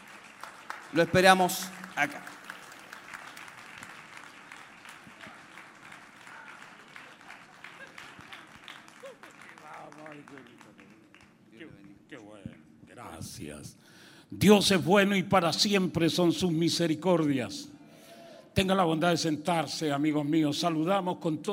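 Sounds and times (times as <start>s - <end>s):
audience applause: 0.0s - 11.9s
speech: 0.9s - 2.4s, 13.5s - 17.7s, 18.6s - 21.5s.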